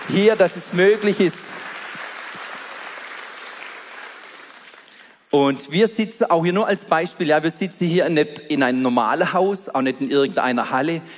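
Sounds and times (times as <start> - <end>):
audience applause: 0.0 - 5.2
speech: 0.1 - 1.7, 5.3 - 11.1.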